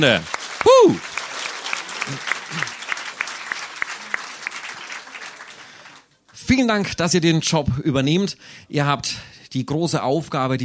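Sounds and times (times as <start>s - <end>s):
speech: 0.0s - 1.2s, 2.1s - 2.7s, 6.6s - 10.6s
audience applause: 0.0s - 6.2s.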